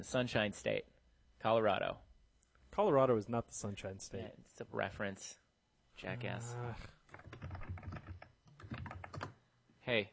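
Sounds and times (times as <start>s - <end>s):
speech: 0.0s - 2.0s, 2.7s - 5.4s, 6.0s - 7.4s, 9.9s - 10.1s
typing on a computer keyboard: 7.1s - 9.4s.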